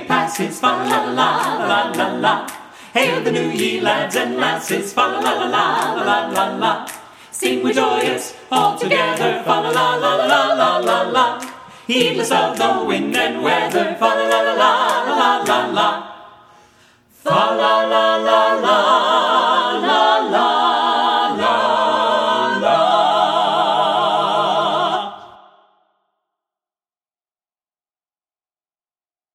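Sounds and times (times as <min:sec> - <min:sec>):
carolers singing a Christmas carol: 0:00.0 - 0:16.3, 0:17.2 - 0:25.4.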